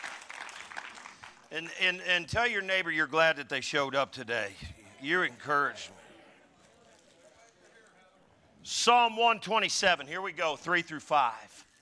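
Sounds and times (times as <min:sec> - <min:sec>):
audience applause: 0:00.0 - 0:01.5
speech: 0:01.5 - 0:06.0, 0:08.6 - 0:11.7.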